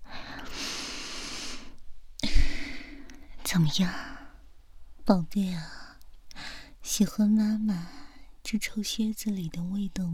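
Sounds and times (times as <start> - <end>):
mother's deep forceful inhale through the nose: 0.3 - 2.8
speech: 3.5 - 4.0, 5.1 - 5.8, 6.9 - 10.1.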